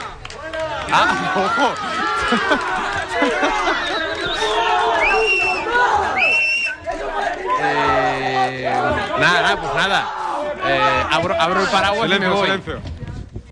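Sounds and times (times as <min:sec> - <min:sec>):
crowd ovation with shouting, whooping and cheering: 0:00.0 - 0:12.7
speech: 0:00.9 - 0:04.5, 0:08.5 - 0:13.0
person laughing: 0:01.8 - 0:04.5.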